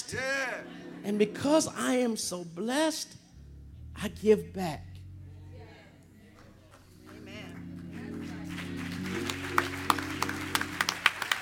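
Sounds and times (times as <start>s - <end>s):
speech: 1.0s - 3.2s, 4.0s - 4.9s
audience clapping: 6.3s - 11.4s.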